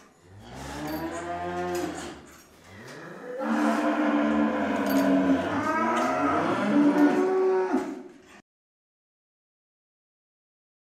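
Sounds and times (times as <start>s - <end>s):
cow mooing: 0.4s - 2.2s, 2.8s - 8.0s.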